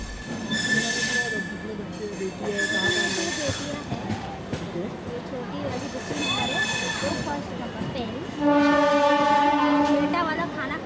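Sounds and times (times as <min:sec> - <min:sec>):
train rumbling beside railway tracks in the Dharavi slum: 0:00.0 - 0:10.8
high metallic train wheel screeches: 0:00.1 - 0:03.7, 0:06.0 - 0:07.3
people talking: 0:01.2 - 0:08.4, 0:10.0 - 0:10.8
loud train horn blast: 0:08.3 - 0:10.3.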